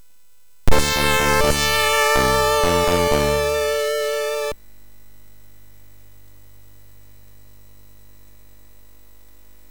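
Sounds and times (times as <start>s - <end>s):
MOS6581R3 SID chip sound: 0.7s - 4.6s.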